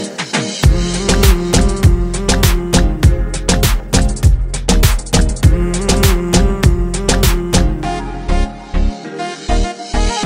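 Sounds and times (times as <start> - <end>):
instrumental ringtone music: 0.0 - 10.2.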